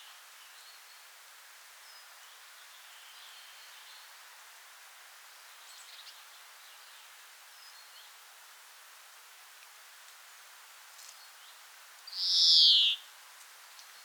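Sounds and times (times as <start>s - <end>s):
European Greenfinch Chloris chloris in Dwingelderveld Holland: 12.2s - 13.0s.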